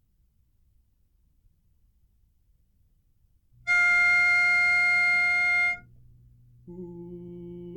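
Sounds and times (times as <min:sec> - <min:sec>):
lead melody of a carol: 0:03.7 - 0:05.9.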